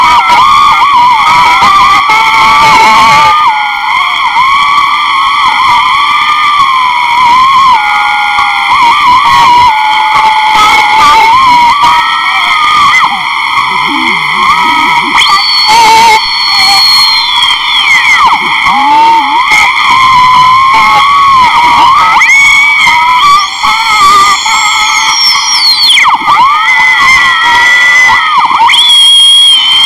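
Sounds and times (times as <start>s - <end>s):
shortwave radio hiss: 0.0s - 28.8s
wavering whistle: 0.0s - 29.8s
brief crackles and sliding squeals: 9.3s - 28.9s
layered buzzing tones: 11.4s - 25.9s.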